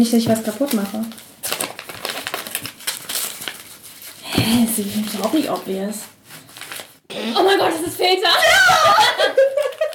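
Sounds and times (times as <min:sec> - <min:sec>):
speech: 0:00.0 - 0:01.3, 0:04.4 - 0:06.1, 0:07.2 - 0:09.7
package being torn open and unwrapped: 0:00.4 - 0:04.2, 0:04.8 - 0:07.0, 0:09.6 - 0:09.9
laughter: 0:08.4 - 0:09.9.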